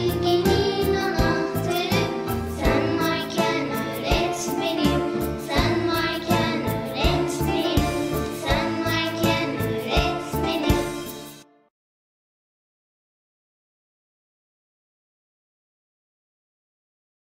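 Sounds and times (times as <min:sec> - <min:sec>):
teacher's song: 0:00.0 - 0:11.7.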